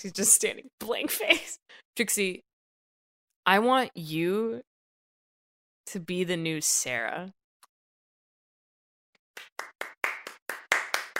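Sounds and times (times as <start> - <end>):
speech: 0.0 - 2.5, 3.4 - 4.7, 5.9 - 7.4
single person clapping hands: 9.2 - 11.1.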